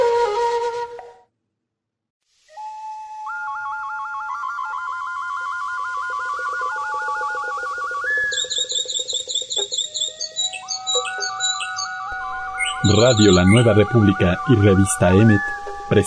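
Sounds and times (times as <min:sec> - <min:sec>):
mockingbird singing: 0:06.2 - 0:16.0
speech: 0:12.9 - 0:16.0.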